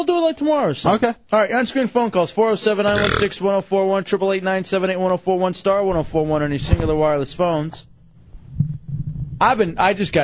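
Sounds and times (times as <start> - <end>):
speech: 0.0 - 7.9, 9.4 - 10.2
low rumbling fart: 2.9 - 3.3.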